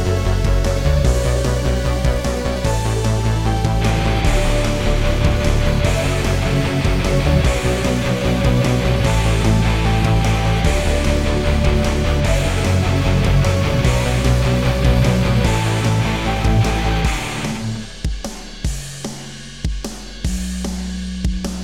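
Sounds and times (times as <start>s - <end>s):
synthwave metal soundtrack music: 0.0s - 21.4s.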